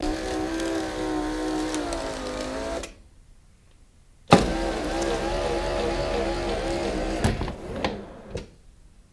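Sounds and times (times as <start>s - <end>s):
electric sunroof opening and closing: 0.0s - 3.0s, 4.3s - 8.5s.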